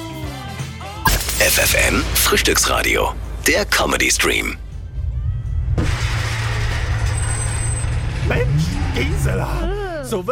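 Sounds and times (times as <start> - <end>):
car crashing onto a curb and knocking down a parking meter: 1.1 - 9.1
car engine rumble: 1.2 - 10.2
speech: 1.5 - 4.6, 9.0 - 10.2.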